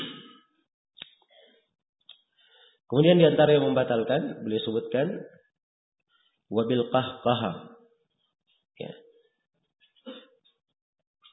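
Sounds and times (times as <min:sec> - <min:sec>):
deliberate throat clearing: 0:00.0 - 0:00.4, 0:10.0 - 0:10.4
speech: 0:02.9 - 0:05.4, 0:06.5 - 0:07.7, 0:08.8 - 0:09.0.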